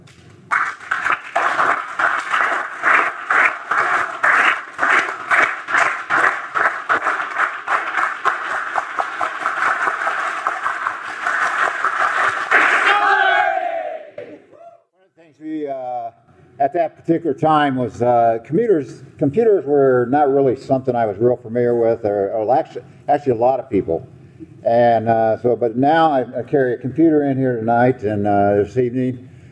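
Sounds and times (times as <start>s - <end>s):
audience solidarity clap: 0.5s - 13.4s
speech: 16.7s - 24.1s, 24.7s - 29.3s.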